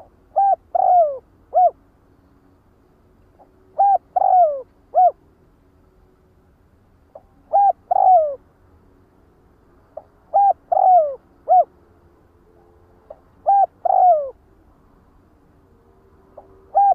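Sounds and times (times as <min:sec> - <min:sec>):
spotted dove cooing: 0:00.0 - 0:01.8, 0:03.4 - 0:05.2, 0:07.1 - 0:08.4, 0:10.0 - 0:11.7, 0:13.1 - 0:14.4, 0:16.3 - 0:16.9.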